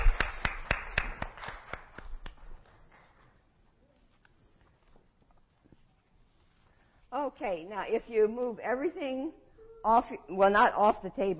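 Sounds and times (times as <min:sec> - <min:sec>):
audience hand clapping: 0:00.0 - 0:02.7
speech: 0:07.3 - 0:11.3.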